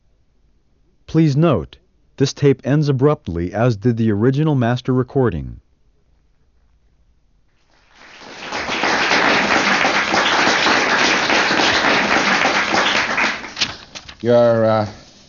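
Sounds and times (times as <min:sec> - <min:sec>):
speech: 0:01.1 - 0:05.6, 0:14.2 - 0:15.0
audience applause: 0:07.8 - 0:13.7.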